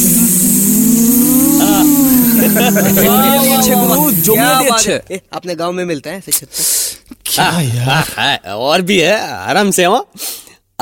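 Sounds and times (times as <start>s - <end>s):
several voices imitating buzzing bees: 0.0s - 4.7s
speech: 2.6s - 6.8s, 7.4s - 10.8s.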